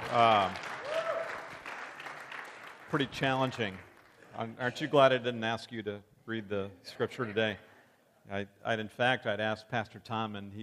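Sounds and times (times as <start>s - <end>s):
audience applause: 0.0s - 4.1s
speech: 0.1s - 0.7s, 2.9s - 10.6s.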